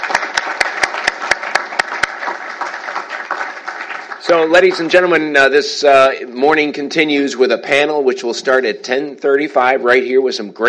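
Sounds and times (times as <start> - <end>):
audience applause: 0.0 - 5.3
speech: 4.3 - 10.6.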